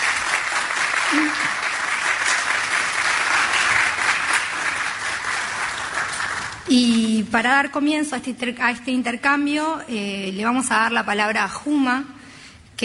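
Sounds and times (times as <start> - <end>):
audience applause for panel: 0.0 - 6.7
speech: 1.1 - 1.6, 6.7 - 12.2.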